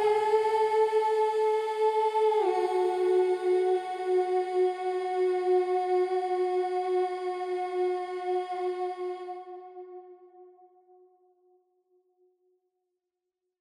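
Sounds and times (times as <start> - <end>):
alto singing a Passion piece: 0.0 - 9.5.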